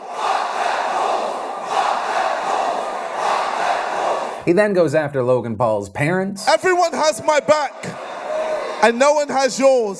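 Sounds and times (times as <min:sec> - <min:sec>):
crowd chanting: 0:00.0 - 0:04.7, 0:07.2 - 0:08.9
speech: 0:04.4 - 0:08.0, 0:08.8 - 0:09.9.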